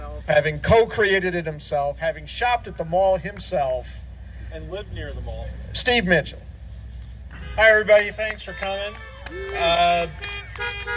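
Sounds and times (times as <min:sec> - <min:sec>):
speech: 0:00.3 - 0:06.5, 0:07.5 - 0:10.9
horn honking: 0:07.3 - 0:10.9.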